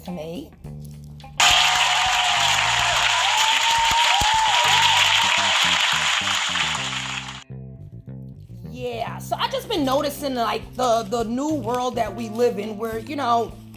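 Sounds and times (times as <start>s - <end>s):
speech: 0.0s - 0.7s, 9.5s - 13.6s
applause: 1.4s - 7.4s.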